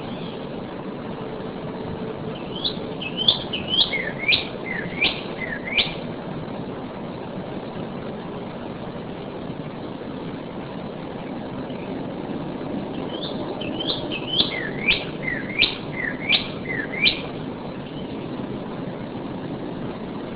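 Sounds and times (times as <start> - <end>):
northern cardinal whistled song: 0.0 - 0.4, 2.3 - 6.0, 13.0 - 18.1
steady hiss: 0.0 - 20.3.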